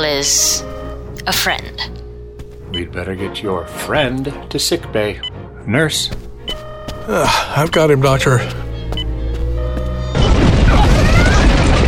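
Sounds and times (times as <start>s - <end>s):
speech: 0.0s - 2.0s, 2.7s - 6.3s, 7.1s - 8.6s
steady tonal hum on a starship: 0.0s - 11.0s
subspace shockwave hitting a starship, heavy boom and rumbling roar: 10.1s - 11.8s.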